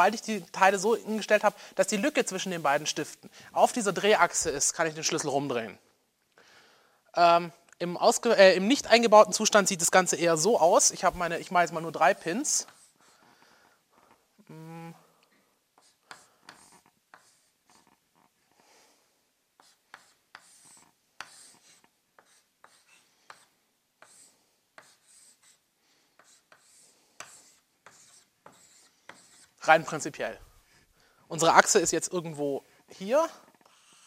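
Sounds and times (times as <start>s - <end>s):
speech: 0.0s - 5.9s, 7.1s - 12.8s, 29.7s - 30.5s, 31.3s - 33.4s
pen drawing a sketch on paper: 12.4s - 13.4s, 15.8s - 18.3s, 19.6s - 30.0s, 33.5s - 34.0s
brief hum of voice: 14.4s - 15.1s.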